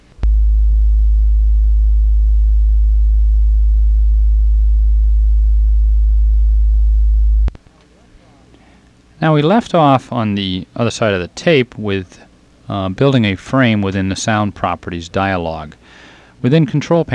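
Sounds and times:
low-pitched electronic beep tone marking a tape section: 0.2s - 7.5s
speech: 9.2s - 17.1s.

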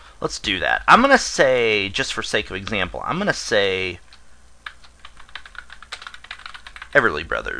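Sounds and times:
speech: 0.2s - 4.0s, 6.9s - 7.5s
computer keyboard typing: 4.1s - 7.0s.

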